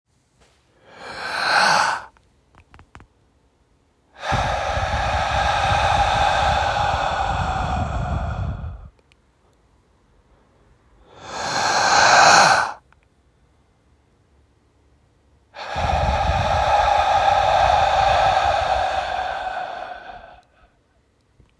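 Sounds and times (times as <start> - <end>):
person breathing in and out: 0.7 - 2.1, 4.1 - 9.0, 11.0 - 12.8, 15.5 - 20.8.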